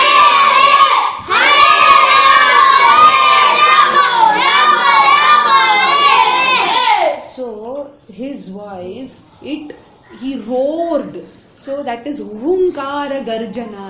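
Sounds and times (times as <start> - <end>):
crowd chanting in unison: 0.0 - 7.2
speech: 8.7 - 13.8.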